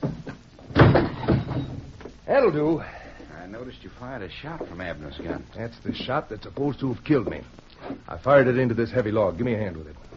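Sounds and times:
wooden table being knocked over: 0.0 - 2.2
speech: 2.3 - 10.1.

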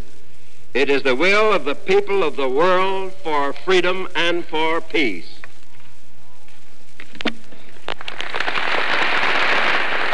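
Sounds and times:
speech: 0.7 - 5.3
crowd applause and cheering after a speech: 7.9 - 10.1.

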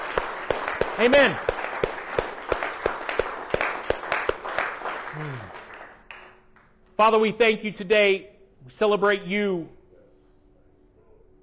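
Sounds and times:
audience clapping: 0.0 - 6.7
speech: 1.0 - 1.5, 7.0 - 9.8.

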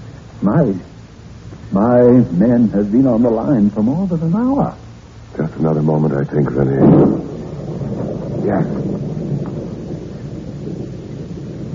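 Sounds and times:
rain: 0.0 - 11.7
speech: 0.4 - 0.9, 1.7 - 4.8, 5.6 - 7.3, 8.4 - 9.0
thunder: 6.4 - 11.7.

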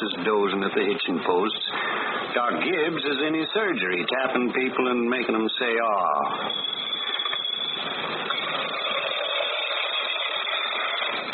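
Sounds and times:
speech: 0.0 - 6.8
lawn mower running: 6.4 - 11.3.

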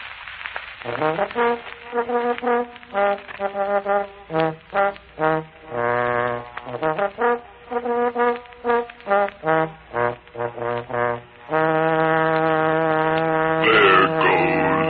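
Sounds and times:
speech: 0.8 - 11.6
trombone playing a brassy call: 11.5 - 14.8.

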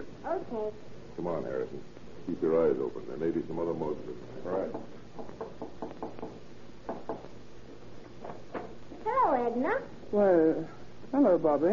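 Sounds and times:
speech: 0.2 - 6.3, 9.2 - 11.7
knocking on a door: 4.5 - 7.3.

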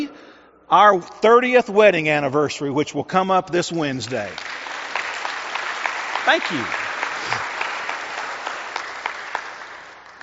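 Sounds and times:
speech: 0.7 - 4.5, 6.3 - 7.5
group applause: 4.1 - 10.2.

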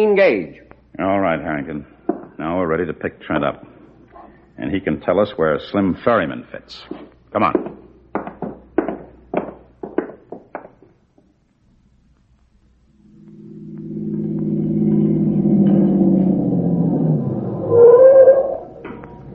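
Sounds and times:
speech: 0.0 - 3.8, 4.6 - 7.8
car driving up the road: 13.0 - 19.3.

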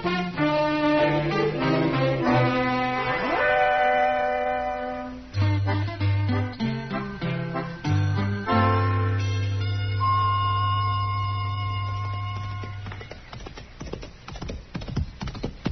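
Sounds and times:
sustained musical chord: 0.7 - 12.9
horse hooves clip-clopping: 11.9 - 15.6.

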